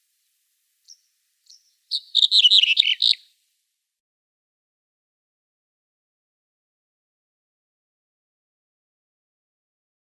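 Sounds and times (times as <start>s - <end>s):
Red-headed Bunting song: 0.8s - 3.4s.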